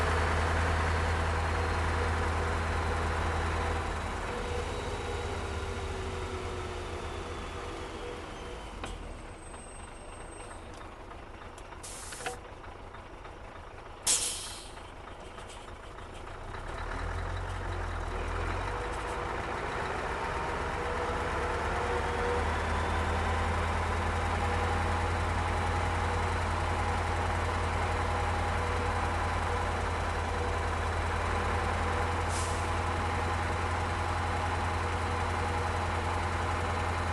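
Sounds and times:
Scania 143 truck engine running onboard during driving and reversing: 0:00.0 - 0:37.1.

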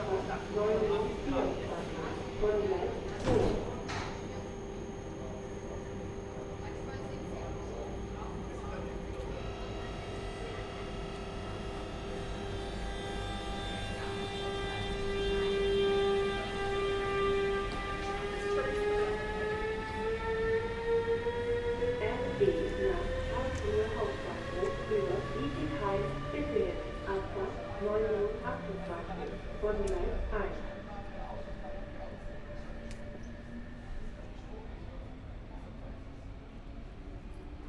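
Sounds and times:
people talking in a small train station: 0:00.0 - 0:10.8, 0:18.0 - 0:20.0, 0:22.0 - 0:32.8
train arriving at a small train station: 0:00.0 - 0:37.6
train station announcement: 0:00.0 - 0:37.6.

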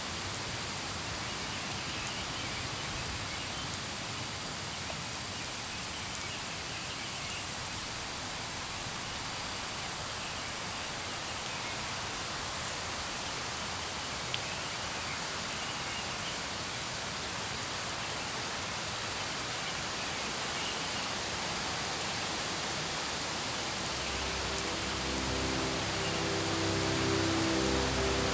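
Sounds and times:
rain on grassland: 0:00.0 - 0:28.3
music: 0:23.4 - 0:28.3.

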